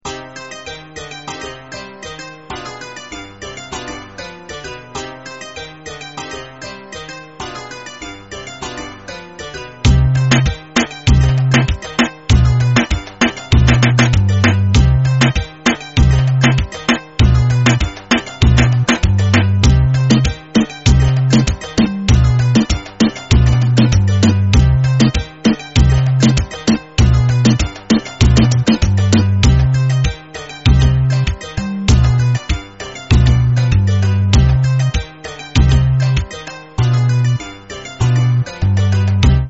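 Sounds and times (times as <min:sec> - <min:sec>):
reggaeton music: 0:09.8 - 0:39.4.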